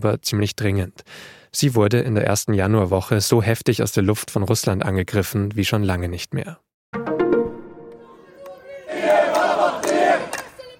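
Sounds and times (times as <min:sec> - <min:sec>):
speech: 0:00.0 - 0:06.7
hundreds of demonstrators in Ramallah in the West Bank: 0:08.0 - 0:10.7.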